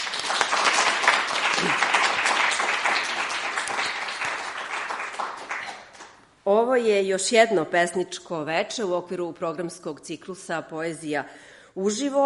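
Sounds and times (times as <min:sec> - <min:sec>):
audience applause welcoming a poet at Kolarac Endowment in Belgrade: 0:00.0 - 0:06.2
speech: 0:06.5 - 0:12.2.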